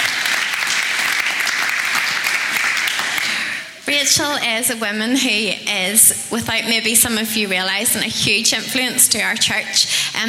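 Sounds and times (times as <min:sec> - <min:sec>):
audience cheering and applause: 0:00.0 - 0:03.6
speech: 0:03.9 - 0:10.2.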